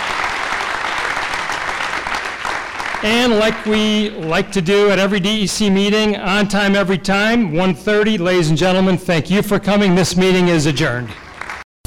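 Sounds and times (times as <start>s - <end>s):
audience applause: 0.0s - 4.7s, 10.9s - 11.8s
speech: 3.0s - 11.2s.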